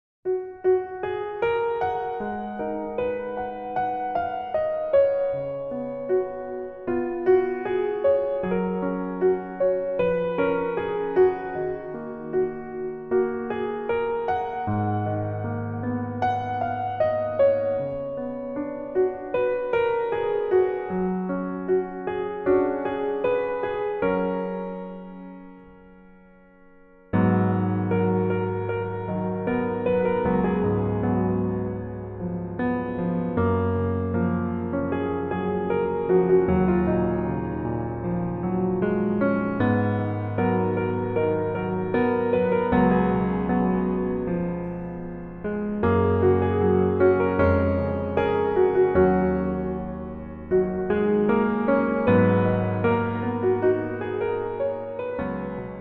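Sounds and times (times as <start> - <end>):
piano melody in female key: 0.2 - 55.8.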